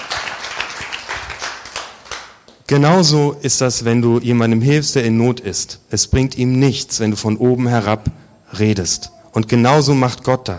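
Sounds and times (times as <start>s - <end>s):
crowd applause: 0.0s - 2.4s
speech: 2.7s - 10.5s.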